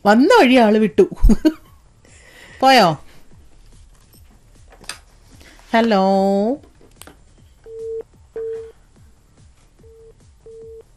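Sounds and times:
speech: 0.0 - 1.6, 2.6 - 3.0, 5.7 - 6.7
phone line beeps while a caller fails to connect: 7.6 - 8.8, 9.8 - 10.8.

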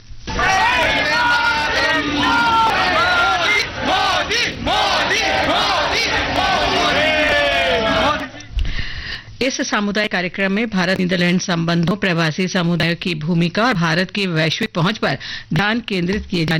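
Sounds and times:
crowd chanting political slogans: 0.3 - 8.4
speech: 9.5 - 16.5.

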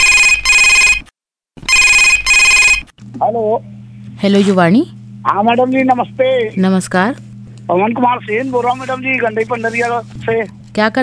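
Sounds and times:
electronic telephone ringing: 0.0 - 1.1, 1.7 - 2.9
speech: 3.2 - 11.0.

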